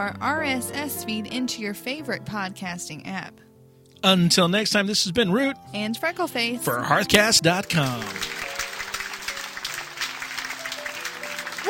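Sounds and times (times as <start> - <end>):
speech: 0.0 - 8.4
soft music with sustained tones: 0.0 - 11.6
hosts clapping: 7.4 - 11.6.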